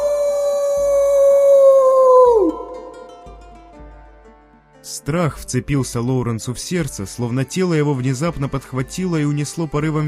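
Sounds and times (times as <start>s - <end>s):
girl howling like a wolf with head thrown back to the sky: 0.0s - 3.4s
speech: 5.0s - 10.0s.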